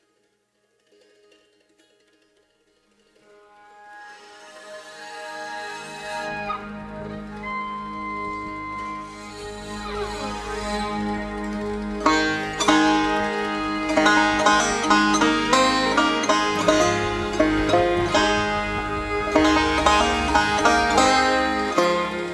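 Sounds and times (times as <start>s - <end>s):
five-string banjo instrumental: 0.8s - 22.3s.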